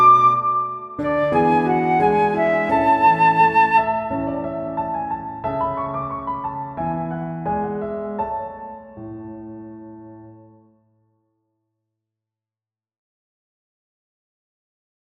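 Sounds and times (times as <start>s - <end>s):
piano ensemble: 0.0s - 10.7s.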